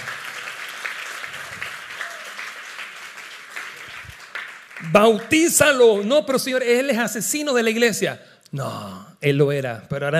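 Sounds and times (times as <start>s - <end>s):
audience applause: 0.0s - 5.8s
speech: 4.8s - 10.1s.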